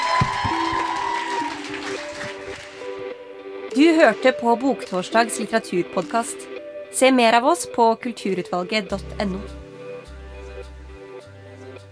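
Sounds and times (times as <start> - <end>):
audience applause: 0.0 - 3.1
speech: 3.8 - 9.6.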